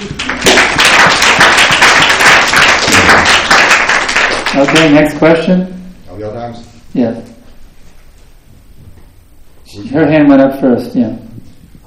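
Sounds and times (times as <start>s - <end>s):
audience applause: 0.0s - 5.1s
speech: 4.6s - 5.8s, 6.9s - 7.2s, 9.8s - 11.2s.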